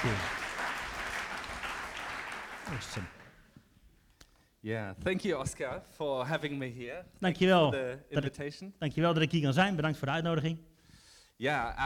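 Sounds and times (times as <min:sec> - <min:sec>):
audience applause: 0:00.0 - 0:03.4
speech: 0:02.7 - 0:03.2, 0:04.6 - 0:10.7, 0:11.4 - 0:11.8.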